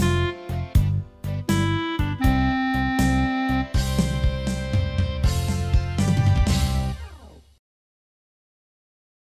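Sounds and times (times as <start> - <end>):
slow folk tune with melody: 0.0 - 7.0.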